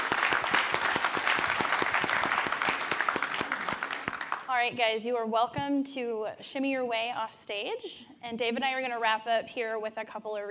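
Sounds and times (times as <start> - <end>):
audience applause: 0.0 - 4.5
speech: 4.6 - 10.5.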